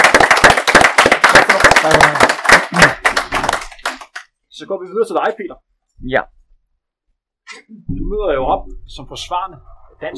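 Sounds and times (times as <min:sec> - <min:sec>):
small group clapping: 0:00.0 - 0:04.4
speech: 0:04.6 - 0:06.4, 0:07.6 - 0:10.1.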